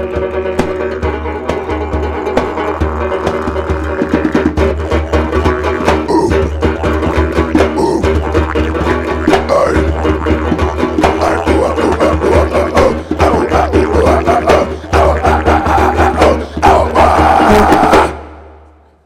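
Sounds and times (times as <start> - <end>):
flamenco music: 0.0 - 18.9.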